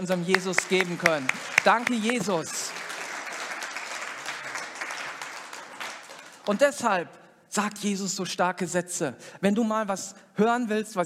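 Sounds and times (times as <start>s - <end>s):
speech: 0.0s - 2.8s, 6.5s - 11.0s
crowd applause: 0.0s - 6.8s.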